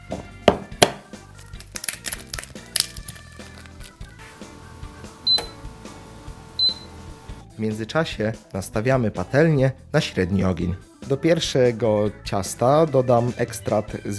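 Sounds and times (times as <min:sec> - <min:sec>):
egg cracked with one hand: 0:01.4 - 0:04.6
speech: 0:07.6 - 0:14.1.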